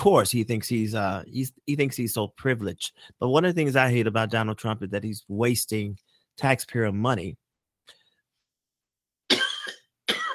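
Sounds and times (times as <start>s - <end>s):
speech: 0.0s - 7.4s
person coughing: 9.3s - 10.3s.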